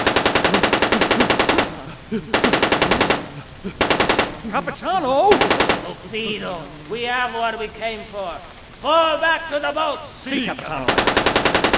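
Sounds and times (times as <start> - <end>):
rapid automatic gunfire: 0.0 - 4.6, 5.3 - 6.1, 10.9 - 11.7
laughter: 0.0 - 8.2, 10.1 - 11.5
speech: 2.1 - 11.7.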